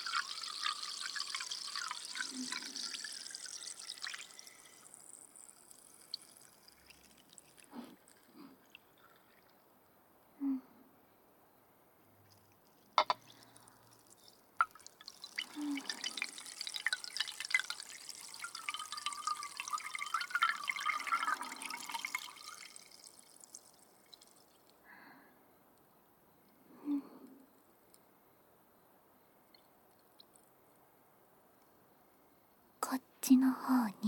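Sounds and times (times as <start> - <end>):
carbonated drink fizzing: 0.0 - 9.6, 12.8 - 24.8
speech: 33.3 - 34.0.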